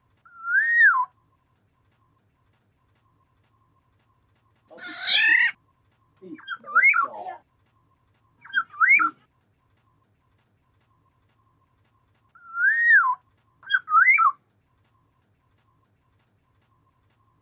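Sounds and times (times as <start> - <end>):
black-naped oriole fluty whistled phrases: 0.3 - 1.2, 8.4 - 9.2, 12.4 - 14.4.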